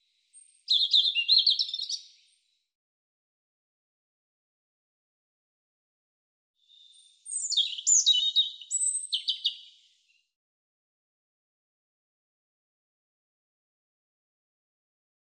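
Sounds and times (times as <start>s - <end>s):
European robin singing high phrases of slurred whistles and trills: 0.2s - 2.4s, 6.7s - 10.2s.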